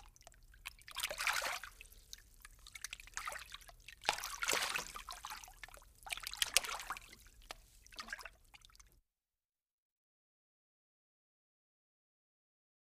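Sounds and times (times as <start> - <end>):
light water splashing: 0.8 - 8.7.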